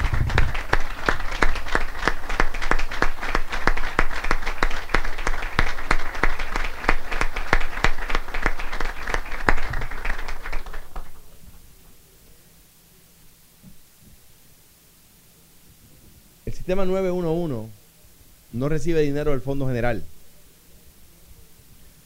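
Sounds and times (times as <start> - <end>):
crowd applause: 0.0 - 11.4
speech: 16.7 - 17.8, 18.5 - 20.1.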